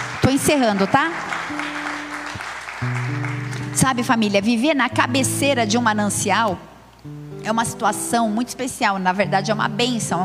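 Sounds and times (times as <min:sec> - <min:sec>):
audience applause: 0:00.0 - 0:03.8
speech: 0:00.3 - 0:01.3, 0:03.8 - 0:10.2.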